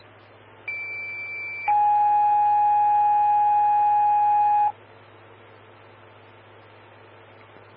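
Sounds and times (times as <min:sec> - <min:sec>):
fire dispatch alert tones over a radio: 0:00.7 - 0:04.7.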